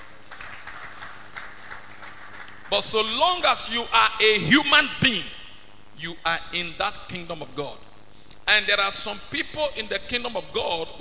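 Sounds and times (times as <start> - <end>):
audience clapping: 0.0 - 2.9
speech: 2.7 - 5.4, 6.0 - 7.8, 8.5 - 11.0.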